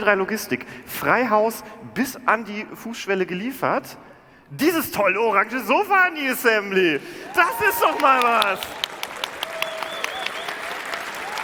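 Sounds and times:
speech: 0.0s - 8.8s
audience applause for a prize giveaway: 7.3s - 11.4s.

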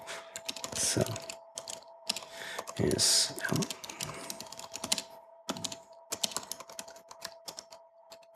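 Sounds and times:
faint steady hum: 0.0s - 8.3s
fingers typing on a computer keyboard: 0.3s - 2.8s, 3.4s - 8.3s
speech: 0.9s - 1.3s, 2.8s - 4.2s.

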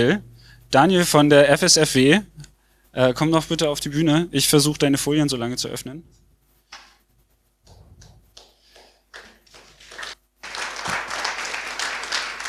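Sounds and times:
speech: 0.0s - 6.2s
audience applause: 8.8s - 12.4s.

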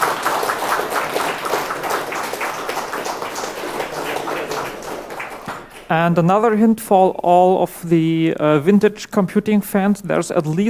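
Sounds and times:
crowd applause: 0.0s - 5.9s
speech: 5.9s - 10.6s.

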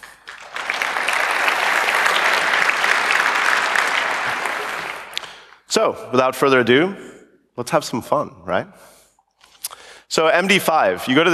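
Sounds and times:
audience applause: 0.0s - 5.5s
speech: 5.8s - 9.0s, 10.1s - 11.3s.

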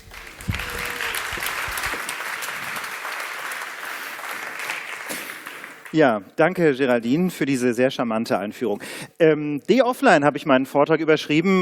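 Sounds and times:
audience applause: 0.0s - 6.0s
speech: 5.9s - 11.6s.

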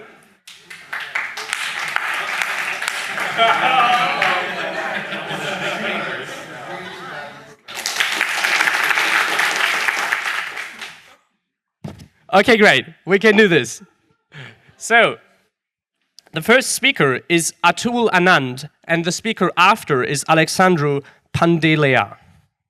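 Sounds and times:
audience clapping: 0.4s - 6.2s, 7.6s - 11.1s
laughter: 1.1s - 7.6s
speech: 3.4s - 4.0s, 12.4s - 14.0s, 14.8s - 15.3s, 16.3s - 22.2s.

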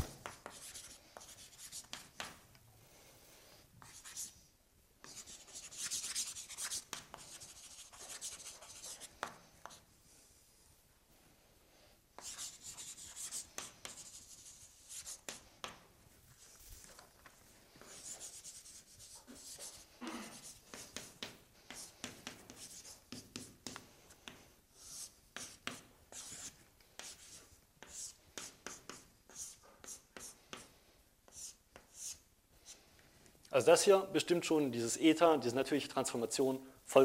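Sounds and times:
writing something down by hand: 0.0s - 2.4s, 3.8s - 4.4s, 5.0s - 9.9s, 12.2s - 32.8s
speech: 33.6s - 37.0s.

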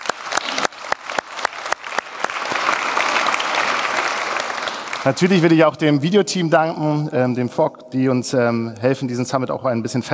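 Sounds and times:
audience clapping: 0.0s - 5.6s
speech: 5.0s - 10.1s.

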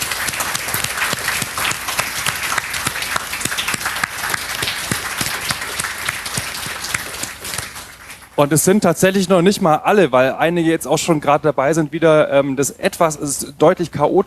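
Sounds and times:
audience applause for helpers: 0.0s - 8.4s
speech: 8.4s - 14.2s.

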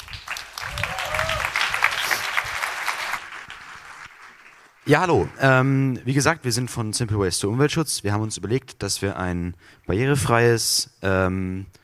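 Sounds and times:
crowd applauding: 0.0s - 5.6s
faint voice or cheer: 0.6s - 1.9s
speech: 4.9s - 11.8s.

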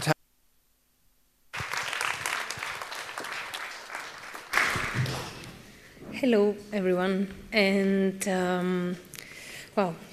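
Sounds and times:
audience applause for a speaker after her talk about the EU: 1.5s - 5.5s
speech: 6.2s - 9.1s, 9.8s - 10.1s.

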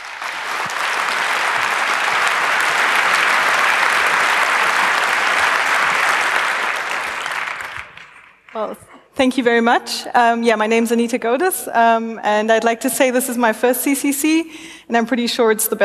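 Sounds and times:
audience welcome applause: 0.0s - 8.7s
speech: 8.6s - 15.8s.

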